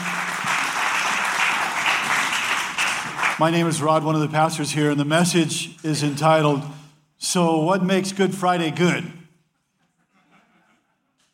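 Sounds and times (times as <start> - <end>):
church congregation clapping at a Good Friday service: 0.0 - 4.1
speech: 3.4 - 9.2.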